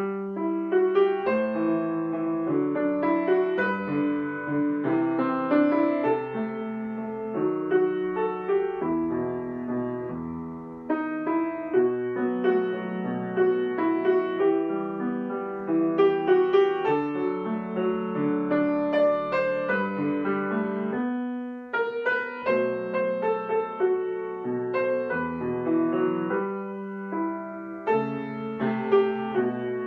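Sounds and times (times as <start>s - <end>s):
easy piano piece: 0.0s - 29.8s.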